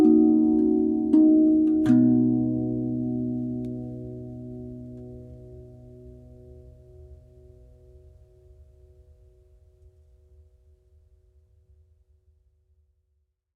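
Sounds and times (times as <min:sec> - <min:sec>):
rav vast steel tongue drum in B major: 0:00.0 - 0:08.7.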